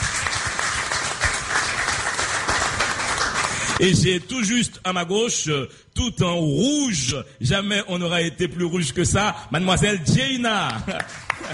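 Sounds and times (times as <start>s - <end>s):
audience applause: 0.0s - 3.8s, 11.0s - 11.5s
speech: 3.8s - 11.5s.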